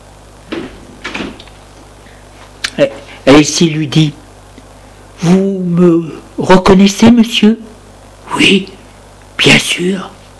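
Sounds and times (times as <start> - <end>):
door opening: 0.5 - 1.6
speech: 2.8 - 4.2, 5.2 - 8.8, 9.4 - 10.2.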